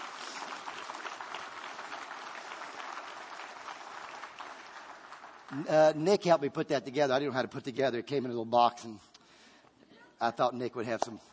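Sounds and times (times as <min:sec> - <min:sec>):
audience applause: 0:00.0 - 0:06.0
speech: 0:05.5 - 0:09.1, 0:10.2 - 0:11.3.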